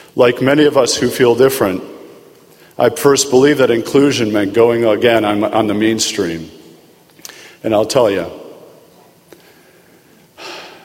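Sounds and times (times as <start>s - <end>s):
speech: 0.2s - 2.0s, 2.8s - 6.6s, 7.6s - 8.4s
speaker inhaling deeply: 7.2s - 7.6s, 9.4s - 10.8s.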